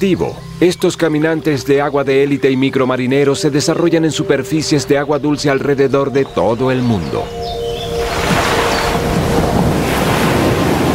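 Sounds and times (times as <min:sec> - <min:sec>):
speech: 0:00.0 - 0:07.6
rough sea waves at the shore: 0:06.9 - 0:10.9.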